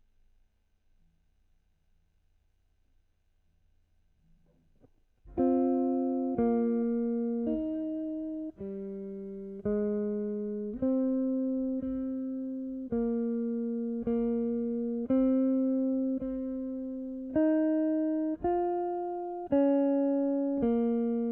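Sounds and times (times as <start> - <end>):
guitar: 4.2 - 21.3.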